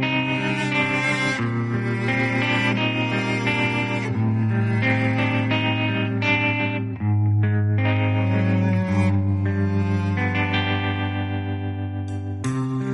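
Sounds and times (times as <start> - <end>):
TV drama soundtrack song playing: 0.1 - 12.9.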